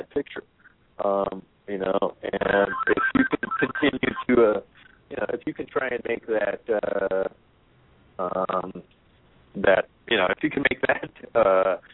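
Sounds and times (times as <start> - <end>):
speech: 0.2 - 7.4, 9.6 - 11.9
mobile phone ringing over a phone line: 2.6 - 4.3.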